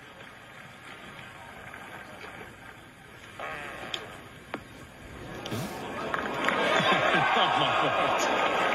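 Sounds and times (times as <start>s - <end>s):
short low buzzy fart during a golf broadcast: 3.2s - 4.3s, 5.3s - 6.3s
outdoor crowd laughter and chatter: 5.2s - 8.7s.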